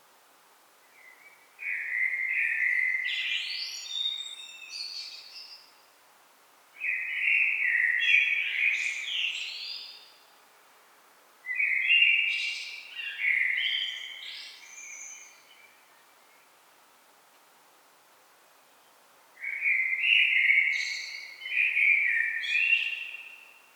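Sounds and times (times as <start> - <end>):
common blackbird song: 0.8 - 5.9, 6.8 - 10.3, 11.4 - 16.6, 18.8 - 23.7.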